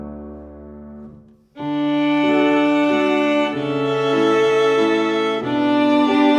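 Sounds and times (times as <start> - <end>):
violin ensemble waltz: 1.6 - 6.3.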